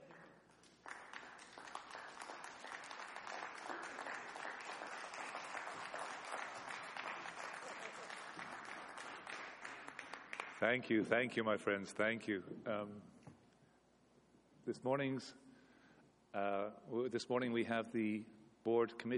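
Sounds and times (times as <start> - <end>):
audience applause: 0.8 - 10.6
speech: 10.6 - 13.2, 14.7 - 15.4, 16.4 - 19.1.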